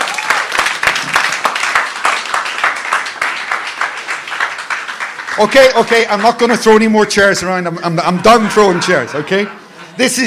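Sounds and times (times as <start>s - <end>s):
audience applause for worship team: 0.0s - 6.6s
speech: 5.4s - 10.2s
laughter: 7.7s - 10.2s.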